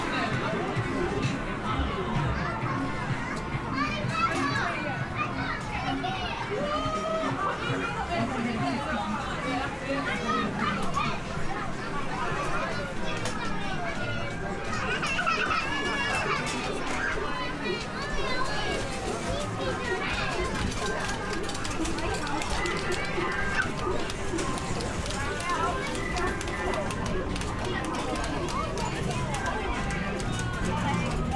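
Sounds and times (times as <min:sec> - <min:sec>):
children's voices in an amusement arcade: 0:00.0 - 0:31.3
lively chatter in an English seaside amusement arcade: 0:00.0 - 0:31.3
arcade machines whirring and chiming: 0:18.7 - 0:31.3.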